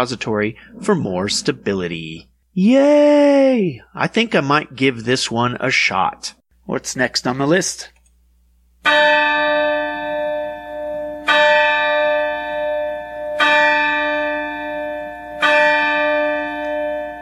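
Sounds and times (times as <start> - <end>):
speech: 0.0 - 8.0, 8.8 - 9.3
clock bell striking midnight: 8.9 - 17.2.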